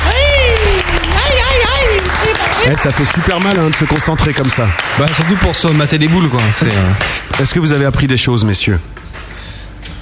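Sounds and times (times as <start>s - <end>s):
person cheering: 0.0s - 4.0s
audience clapping: 0.0s - 8.0s
speech: 2.7s - 9.1s.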